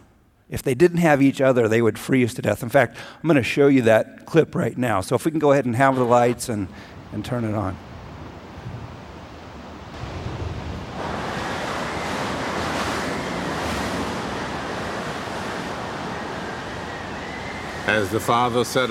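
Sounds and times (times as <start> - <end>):
speech: 0.5 - 7.9, 17.9 - 18.8
Antarctic storm wind roaring: 6.2 - 18.8.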